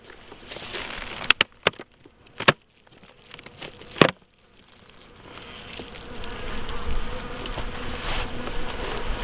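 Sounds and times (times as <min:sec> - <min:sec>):
honeybees buzzing at an opened hive: 0:02.1 - 0:09.2.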